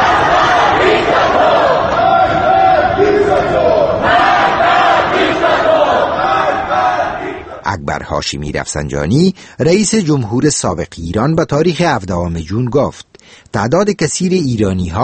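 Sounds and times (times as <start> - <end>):
angry crowd shouting at protest in Apadana, Tehran: 0.0 - 7.6
speech: 7.8 - 15.0.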